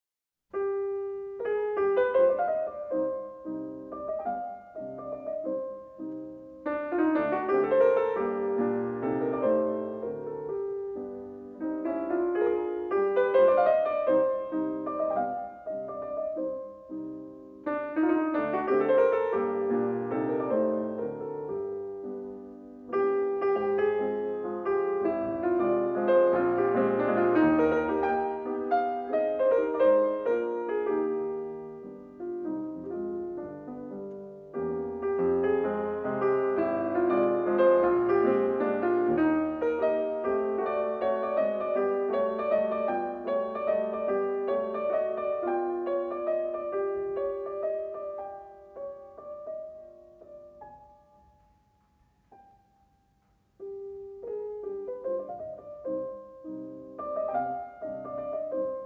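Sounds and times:
piano mazurka in C minor: 0.5s - 58.8s.

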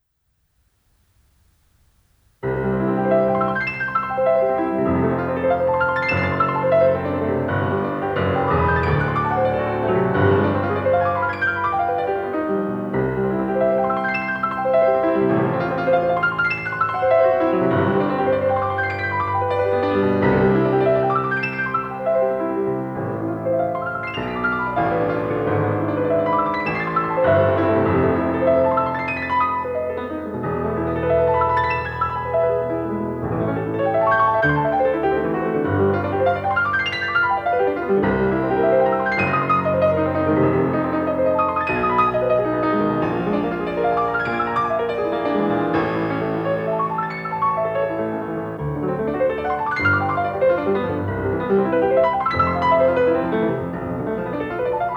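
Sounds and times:
piano etude in C major: 0.9s - 54.9s.

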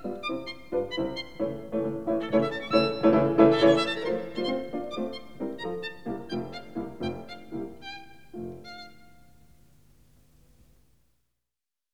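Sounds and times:
violin playing a sonata scherzo: 0.0s - 9.4s
piano playing a sonata scherzo: 0.0s - 9.5s.

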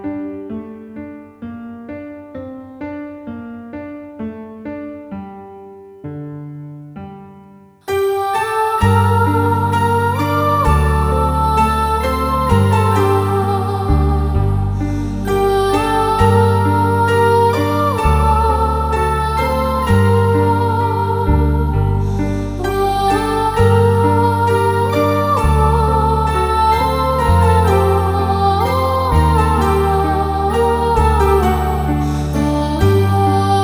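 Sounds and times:
new age music: 7.1s - 33.6s.

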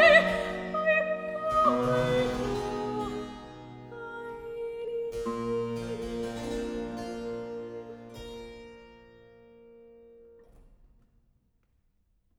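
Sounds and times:
cantata recitative: 0.0s - 8.1s.

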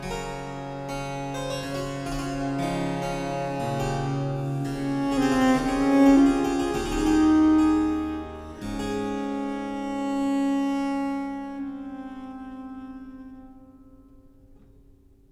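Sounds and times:
viola da gamba sonata in D major: 2.5s - 13.6s.

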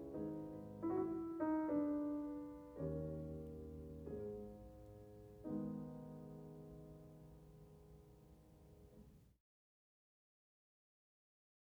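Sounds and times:
mazurka in G sharp major on piano: 0.0s - 9.1s.

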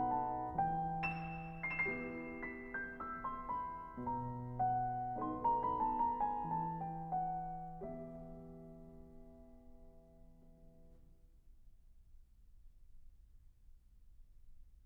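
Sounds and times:
piano mazurka in E minor: 0.0s - 11.2s.

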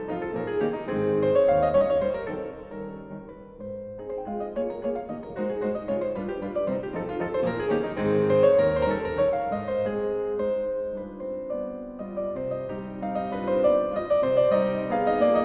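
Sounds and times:
mazurka in A flat major on piano: 0.0s - 15.4s.

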